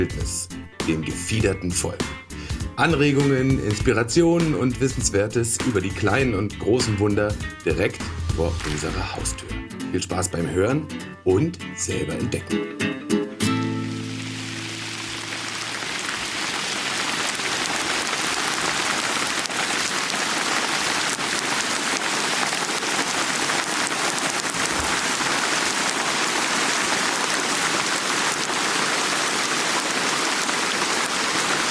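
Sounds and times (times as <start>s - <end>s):
speech: 0.0s - 2.2s, 2.8s - 13.1s
rain falling on surfaces: 8.1s - 9.3s, 13.5s - 31.6s.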